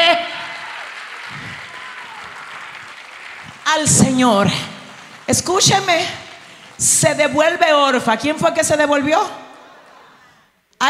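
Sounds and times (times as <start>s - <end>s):
crowd applauding: 0.2s - 7.7s
speech: 3.7s - 4.7s, 5.3s - 6.2s, 6.8s - 9.4s.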